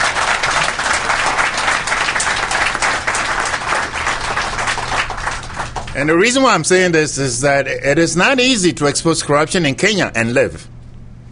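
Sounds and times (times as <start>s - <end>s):
audience applause: 0.0s - 6.4s
speech: 6.0s - 10.8s.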